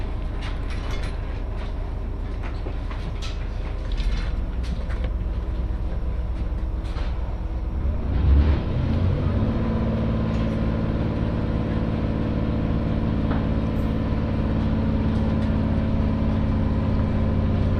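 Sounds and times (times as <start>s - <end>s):
humming train engine drone: 0.0s - 17.7s
train rumbling on the Muroran Main Line: 0.0s - 17.7s.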